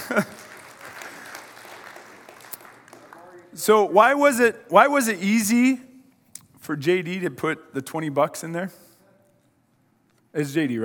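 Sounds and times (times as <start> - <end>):
audience applause: 0.0 - 3.5
speech: 0.1 - 0.4, 3.6 - 5.9, 6.7 - 8.8, 10.3 - 10.8.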